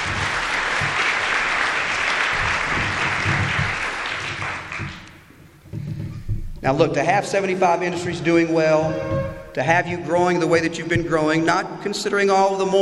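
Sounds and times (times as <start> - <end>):
audience applause: 0.0 - 5.3
speech: 6.7 - 12.7.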